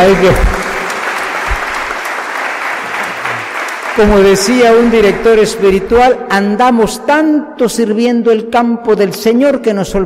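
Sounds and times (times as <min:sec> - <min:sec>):
speech: 0:00.0 - 0:00.6, 0:04.0 - 0:10.0
church congregation clapping during a sermon: 0:00.0 - 0:06.0.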